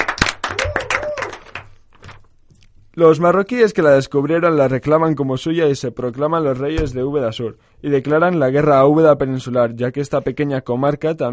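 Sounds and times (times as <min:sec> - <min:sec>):
crowd clapping: 0:00.0 - 0:01.9
shouts and whoops: 0:00.4 - 0:01.6
speech: 0:03.0 - 0:11.3.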